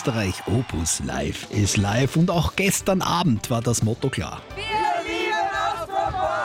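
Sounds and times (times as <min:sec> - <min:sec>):
fans roaring and cheering at an Austropop concert: 0:00.0 - 0:02.3, 0:04.4 - 0:06.4
speech: 0:00.0 - 0:04.8.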